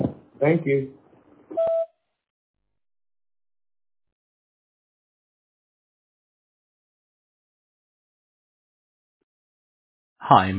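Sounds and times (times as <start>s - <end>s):
speech: 0.4s - 1.0s, 10.3s - 10.5s
voicemail beep: 1.6s - 1.9s.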